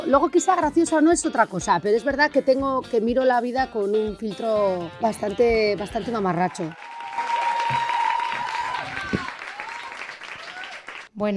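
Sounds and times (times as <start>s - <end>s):
speech: 0.1s - 6.9s, 11.2s - 11.3s
audience applause: 6.4s - 11.1s.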